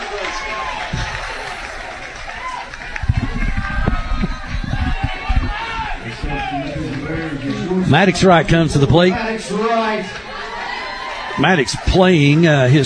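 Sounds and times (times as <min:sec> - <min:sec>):
baseball crowd cheering: 0:00.0 - 0:12.8
speech: 0:07.9 - 0:10.2, 0:11.4 - 0:12.8.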